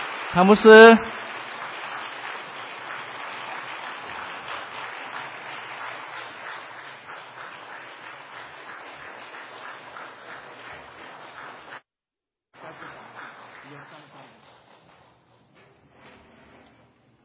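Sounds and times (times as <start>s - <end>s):
warm applause from a large crowd: 0.0s - 11.8s, 12.6s - 15.1s
speech: 0.3s - 1.3s.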